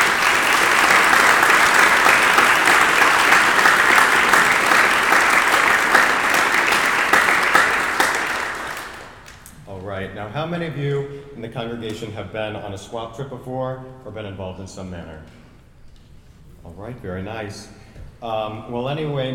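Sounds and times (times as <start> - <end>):
audience applause: 0.0 - 9.5
speech: 10.4 - 15.4, 16.6 - 19.3.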